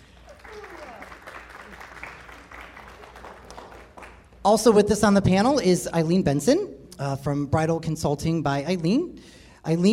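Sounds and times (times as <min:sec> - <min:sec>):
audience applause: 0:00.0 - 0:04.3
speech: 0:04.4 - 0:09.9.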